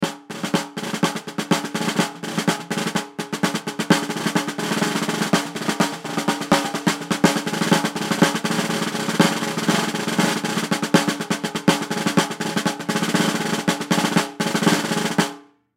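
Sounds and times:
snare drum: 0:00.0 - 0:15.5.

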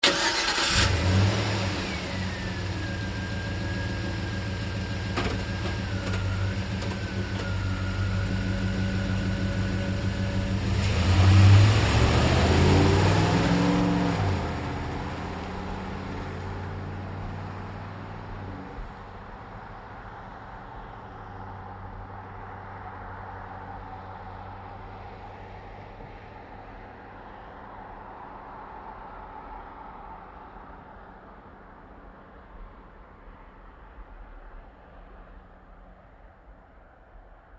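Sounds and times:
GMC Savana truck starting and driving away: 0:00.0 - 0:19.0.

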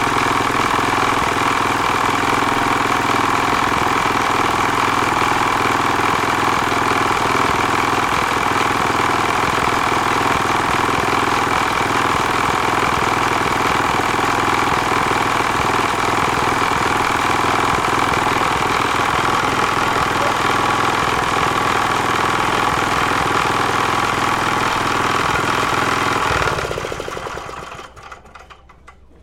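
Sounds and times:
1973 Villiers 412 industrial engine operating: 0:00.0 - 0:29.2.

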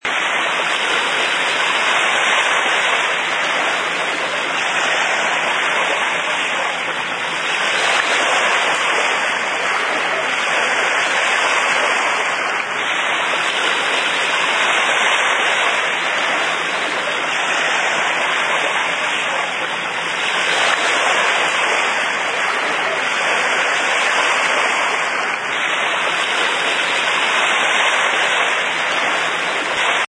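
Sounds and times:
smooth calm ocean waves: 0:00.0 - 0:30.0.

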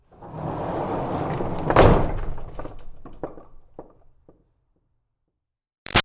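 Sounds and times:
wooden barn door rolling: 0:00.0 - 0:04.5.

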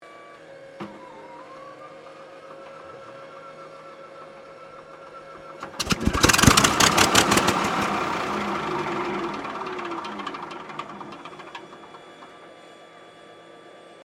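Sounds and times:
P-40 Kittyhawk aircraft engine starting and misfiring: 0:04.2 - 0:12.8.

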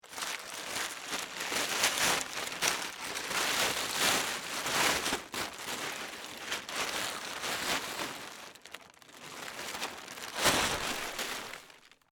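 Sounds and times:
plastic tarp unfolding: 0:00.0 - 0:12.1.

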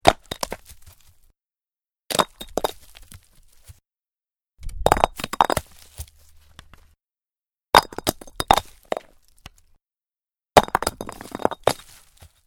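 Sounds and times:
rock falling and tumbling on rocky surface: 0:00.0 - 0:01.3, 0:02.1 - 0:03.8, 0:04.6 - 0:07.0, 0:07.8 - 0:09.8, 0:10.6 - 0:12.4.

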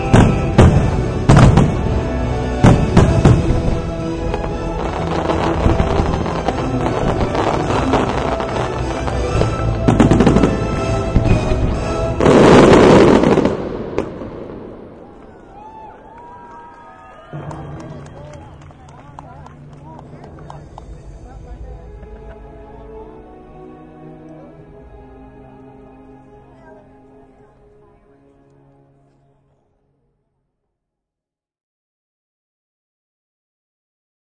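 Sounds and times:
firework show: 0:00.0 - 0:02.0, 0:02.6 - 0:15.3
orchestral music in background: 0:00.0 - 0:16.3, 0:17.3 - 0:29.7.

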